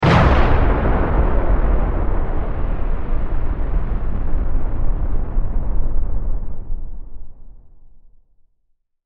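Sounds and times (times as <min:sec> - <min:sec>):
science fiction explosion: 0:00.0 - 0:07.8.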